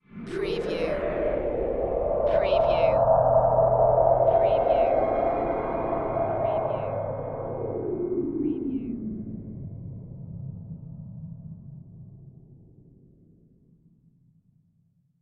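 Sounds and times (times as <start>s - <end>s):
production element sweeper: 0.1s - 10.3s.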